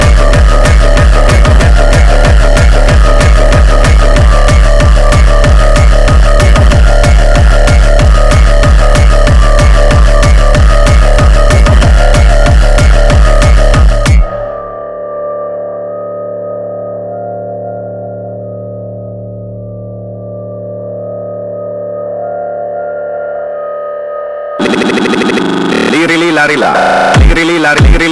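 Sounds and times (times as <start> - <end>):
hardstyle music: 0.0 - 14.9, 24.6 - 28.1.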